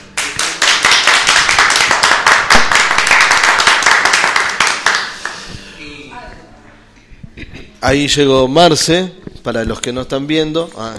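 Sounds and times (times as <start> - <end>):
several people clapping: 0.0 - 5.5
speech: 7.8 - 10.9.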